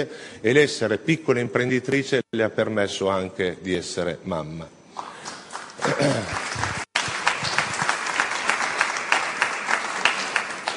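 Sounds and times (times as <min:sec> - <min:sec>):
speech: 0:00.0 - 0:05.1, 0:05.9 - 0:06.7
audience applauding: 0:05.2 - 0:10.7.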